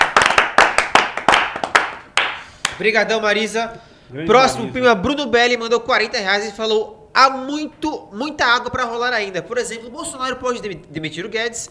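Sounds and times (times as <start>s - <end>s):
clapping applause: 0.0s - 2.8s
speech: 2.8s - 11.7s.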